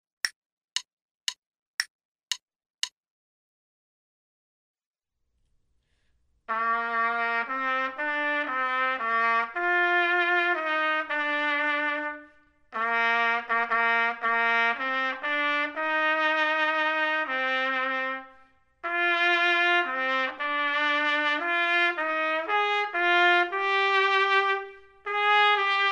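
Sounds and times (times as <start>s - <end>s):
trumpet: 6.5s - 25.8s.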